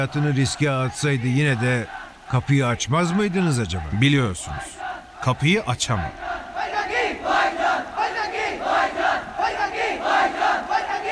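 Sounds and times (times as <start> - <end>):
speech: 0.0 - 6.3
crowd of protesters shouting and chanting: 0.0 - 11.1.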